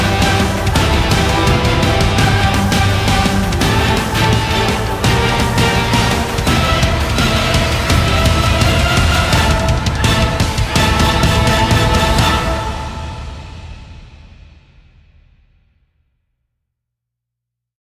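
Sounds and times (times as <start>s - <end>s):
epic speed metal music: 0.0s - 14.2s.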